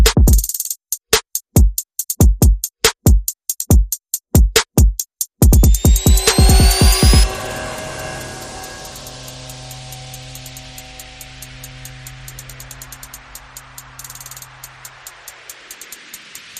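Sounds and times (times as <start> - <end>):
percussion: 0.0 - 16.5
sound effects: 5.5 - 15.8.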